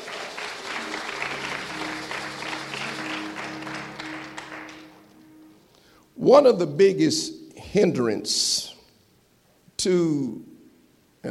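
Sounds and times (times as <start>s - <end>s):
audience applause: 0.0s - 5.4s
speech: 6.2s - 8.7s, 9.8s - 10.5s.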